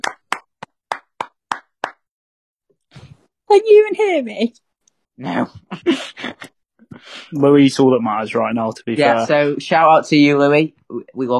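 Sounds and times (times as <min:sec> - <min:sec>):
hand clapping: 0:00.0 - 0:02.1
speech: 0:03.5 - 0:04.6, 0:05.2 - 0:11.3.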